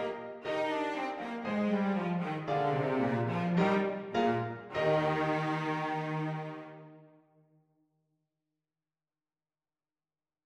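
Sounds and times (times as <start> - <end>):
cello: 0.0 - 7.2.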